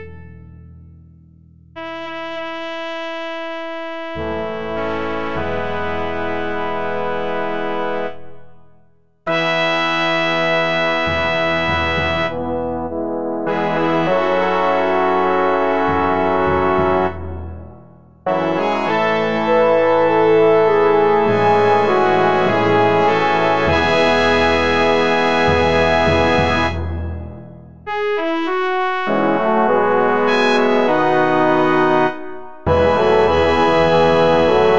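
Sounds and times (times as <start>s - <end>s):
fanfare: 4.1s - 8.3s, 9.3s - 17.3s, 18.3s - 27.1s, 28.2s - 34.7s.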